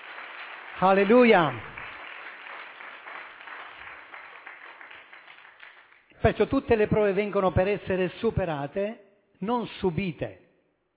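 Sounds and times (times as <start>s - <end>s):
audience applauding: 0.0s - 6.1s
speech: 0.8s - 1.7s, 6.2s - 10.4s.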